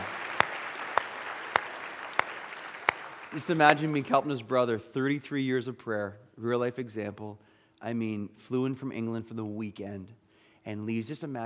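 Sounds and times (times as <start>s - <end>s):
audience clapping: 0.0s - 4.4s
speech: 3.3s - 11.4s.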